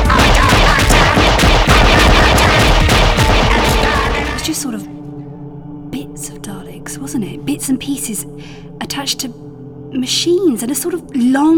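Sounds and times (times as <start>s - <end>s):
heavy gunfire as Praxis wardens attack a Dalek refuelling station: 0.0s - 4.6s
speech: 7.2s - 11.5s.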